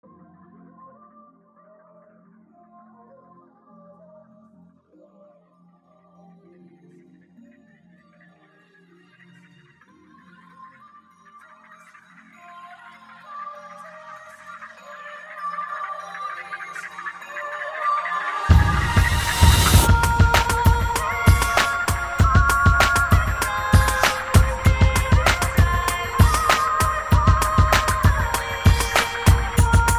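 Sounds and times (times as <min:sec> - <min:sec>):
instrumental remix: 0:11.9 - 0:29.9.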